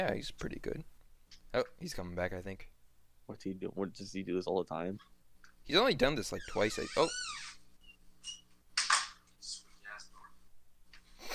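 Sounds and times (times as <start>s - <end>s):
speech: 0.0s - 2.7s, 3.3s - 7.4s
squeaky door opening: 6.2s - 8.5s.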